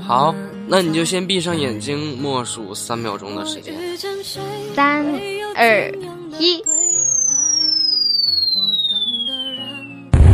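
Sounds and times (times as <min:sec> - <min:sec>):
soft sustained musical backing: 0:00.0 - 0:06.8
speech: 0:00.1 - 0:06.8
firework high whistle gliding downward: 0:06.7 - 0:10.3.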